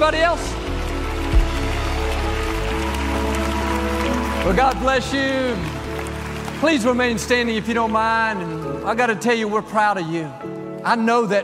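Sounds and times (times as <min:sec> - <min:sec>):
speech: 0:00.0 - 0:00.6, 0:04.4 - 0:05.8, 0:06.6 - 0:11.4
audience clapping at Lakewood: 0:00.0 - 0:09.1.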